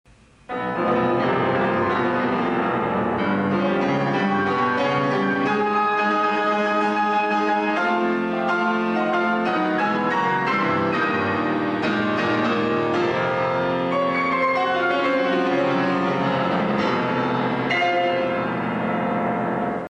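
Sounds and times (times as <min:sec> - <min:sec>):
piano toccata: 0:00.1 - 0:19.8.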